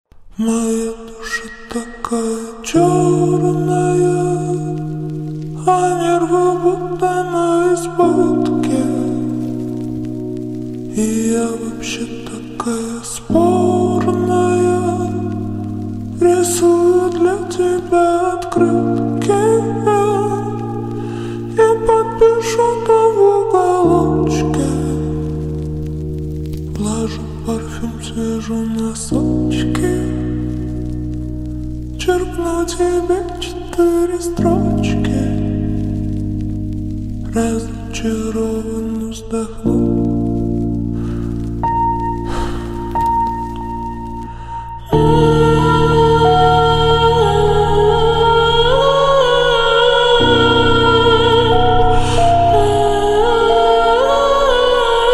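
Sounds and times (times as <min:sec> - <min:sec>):
slowed reverb music: 0:00.2 - 0:55.1.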